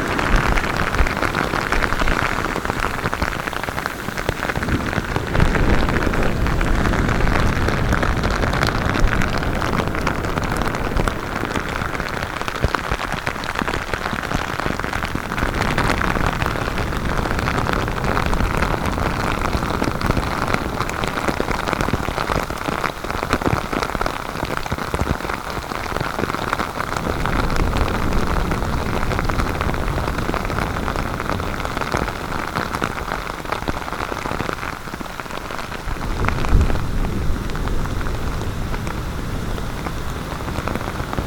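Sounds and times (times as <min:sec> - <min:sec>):
rain on a beach in Vietnam: 0:00.0 - 0:41.2.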